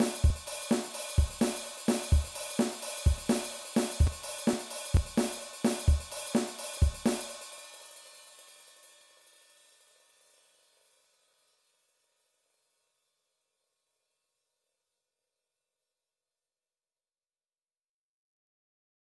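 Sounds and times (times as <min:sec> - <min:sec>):
rock drum beat: 0:00.0 - 0:07.4.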